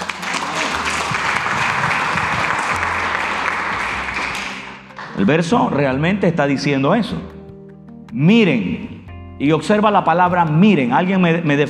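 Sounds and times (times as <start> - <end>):
applause: 0.0 - 5.2
speech: 5.2 - 7.4, 8.1 - 11.6.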